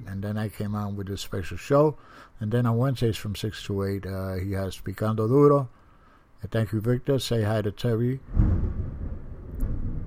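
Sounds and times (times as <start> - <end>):
speech: 0.2 - 5.8, 6.4 - 8.8
thunder rumbling: 8.2 - 10.0.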